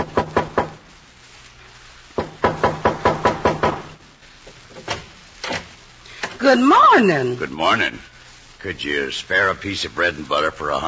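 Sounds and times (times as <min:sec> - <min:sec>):
knock at the back door: 0:00.0 - 0:00.8, 0:02.2 - 0:04.0
speech: 0:06.5 - 0:10.8.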